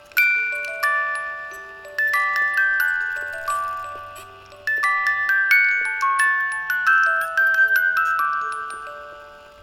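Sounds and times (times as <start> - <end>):
music box loop: 0.0 - 9.6.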